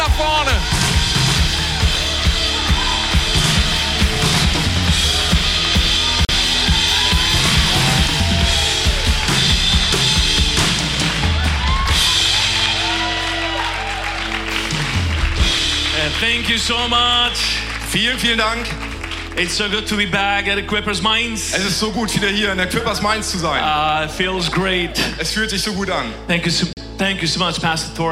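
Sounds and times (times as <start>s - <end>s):
cheering: 0.0s - 19.1s
thunderous applause: 0.0s - 20.2s
speech: 16.4s - 18.8s, 19.4s - 28.0s.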